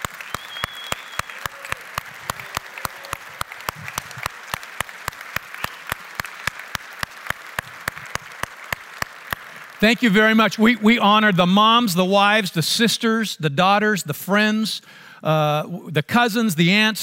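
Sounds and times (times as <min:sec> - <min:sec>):
audience applauding: 0:00.0 - 0:11.4
speech: 0:09.8 - 0:17.0.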